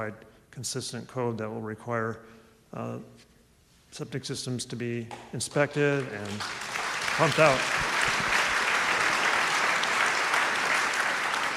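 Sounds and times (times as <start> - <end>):
speech: 0.0 - 3.3, 3.9 - 8.0
crowd applauding: 5.9 - 11.5.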